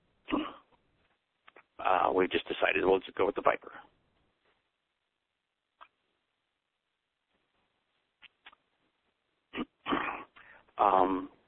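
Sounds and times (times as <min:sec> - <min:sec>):
coughing: 0:00.2 - 0:00.7, 0:09.5 - 0:11.2
speech: 0:01.9 - 0:03.9.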